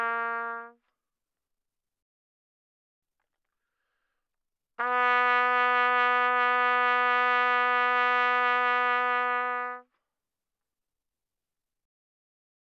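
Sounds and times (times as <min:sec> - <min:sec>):
trumpet playing with vibrato mezzo-forte: 0:00.0 - 0:00.8, 0:04.8 - 0:09.8.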